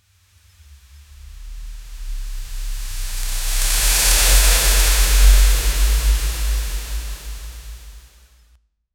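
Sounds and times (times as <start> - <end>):
broom sweeping: 3.0 - 7.6.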